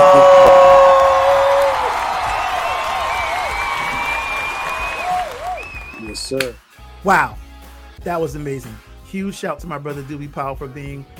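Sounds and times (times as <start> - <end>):
applause and cheering for the guest: 0.0 - 6.7
speech: 7.1 - 7.4, 8.0 - 11.1.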